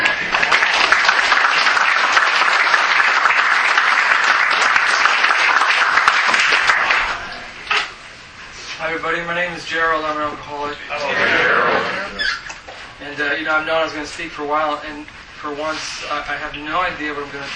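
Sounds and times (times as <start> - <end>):
audience at a meeting clapping to welcome a speaker: 0.0 - 7.5
speech: 9.2 - 12.1, 13.2 - 17.5.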